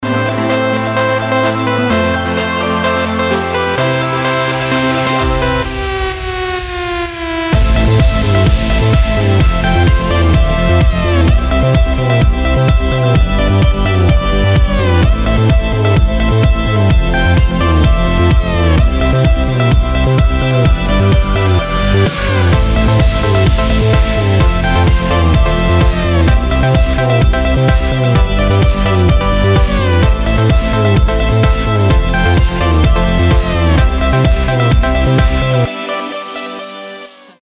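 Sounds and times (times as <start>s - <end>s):
club version of a Christmas song: 0.0s - 37.4s.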